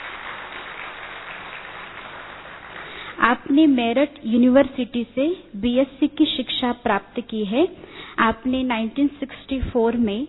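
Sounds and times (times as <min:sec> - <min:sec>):
audience applause welcoming a speaker onto a stage: 0:00.0 - 0:03.0
speech: 0:03.2 - 0:10.2.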